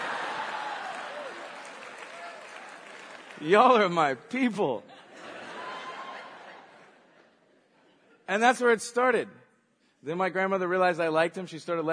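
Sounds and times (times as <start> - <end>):
audience cheering: 0.0 - 3.6
speech: 3.4 - 4.9, 8.3 - 9.4, 10.0 - 11.9
laughter: 4.9 - 8.3.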